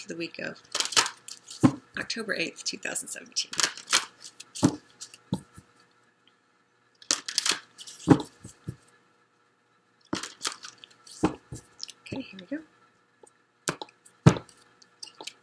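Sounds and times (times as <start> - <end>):
speech: 0.0 - 0.9, 2.0 - 3.9
tarot cards being shuffled and drawn: 0.7 - 1.8, 3.4 - 5.6, 7.1 - 8.8, 10.2 - 12.0.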